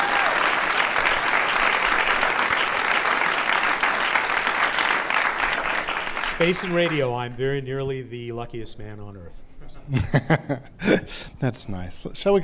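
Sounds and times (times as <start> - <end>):
audience applause: 0.0 - 7.4
speech: 6.4 - 12.4
laughter: 9.9 - 11.2.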